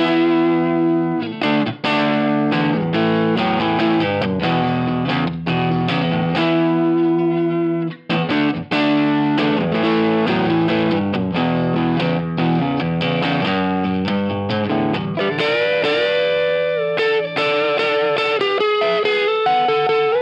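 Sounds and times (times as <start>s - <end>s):
electric guitar with three 6K pickups through a Marshall Plexi amplifier: 0.0s - 20.2s.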